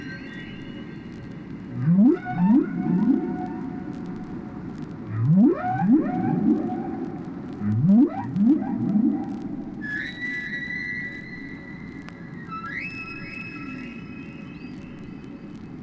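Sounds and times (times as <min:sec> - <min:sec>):
whale song: 0:00.0 - 0:04.5, 0:05.1 - 0:15.8
underwater rumble: 0:01.6 - 0:09.9.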